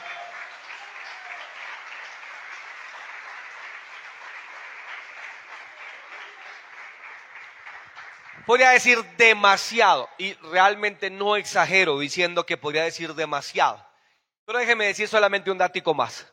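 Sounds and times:
audience applause: 0.0 - 9.1
speech: 8.4 - 13.9, 14.5 - 16.3.

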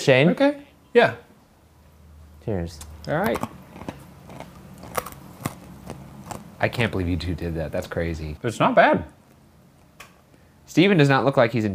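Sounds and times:
speech: 0.0 - 1.2, 2.4 - 3.5, 6.6 - 9.2, 10.7 - 11.7
low steady hum: 0.0 - 11.7
chewing dry cat food: 3.1 - 6.9.

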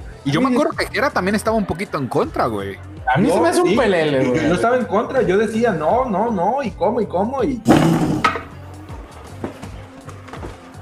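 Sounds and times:
speech: 0.2 - 8.3
person falling off a chair: 7.7 - 8.6.

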